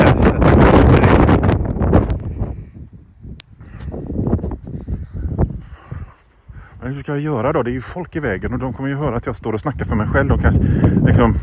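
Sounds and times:
wind blowing against the microphone: 0:00.0 - 0:11.4
speech: 0:07.0 - 0:11.4.

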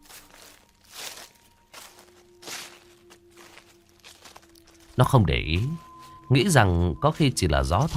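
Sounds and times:
rustling footsteps: 0:00.0 - 0:07.9
speech: 0:05.0 - 0:07.9.

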